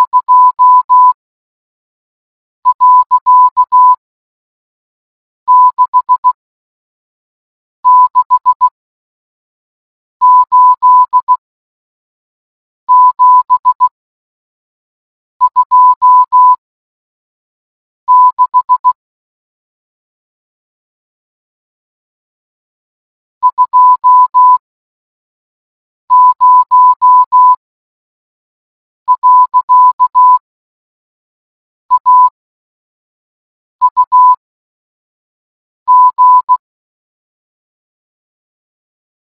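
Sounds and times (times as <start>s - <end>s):
morse code beeps: 0.0s - 1.2s, 2.7s - 4.0s, 5.5s - 6.4s, 7.9s - 8.7s, 10.2s - 11.4s, 12.9s - 13.9s, 15.4s - 16.6s, 18.1s - 19.0s, 23.4s - 24.6s, 26.1s - 27.6s, 29.1s - 30.4s, 31.9s - 32.4s, 33.8s - 34.4s, 35.9s - 36.6s.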